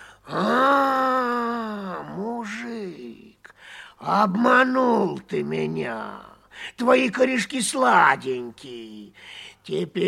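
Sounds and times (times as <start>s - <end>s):
person imitating bear roar: 0.3s - 3.1s
speech: 4.0s - 10.0s.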